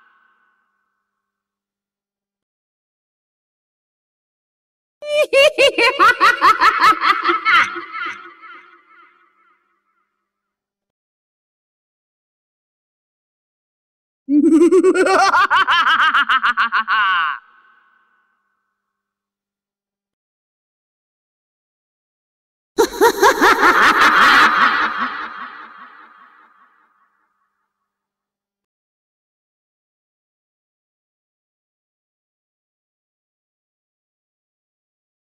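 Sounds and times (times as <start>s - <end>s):
creepy horror laughter: 5.0s - 9.2s, 14.3s - 17.9s, 22.8s - 26.7s.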